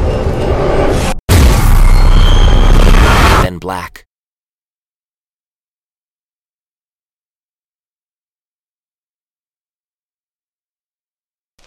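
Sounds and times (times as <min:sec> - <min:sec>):
explosion obliterating a gun position: 0:00.5 - 0:03.5
speech: 0:03.7 - 0:04.1.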